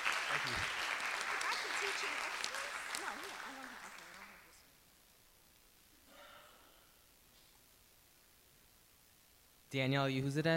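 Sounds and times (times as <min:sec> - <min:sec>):
audience applause: 0:00.0 - 0:04.6
speech: 0:00.4 - 0:00.8, 0:01.8 - 0:04.0, 0:09.7 - 0:10.5.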